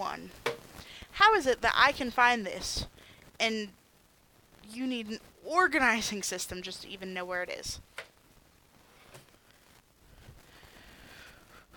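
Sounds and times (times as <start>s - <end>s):
speech: 1.2s - 3.8s, 4.7s - 7.9s
deep breathing: 10.0s - 11.7s.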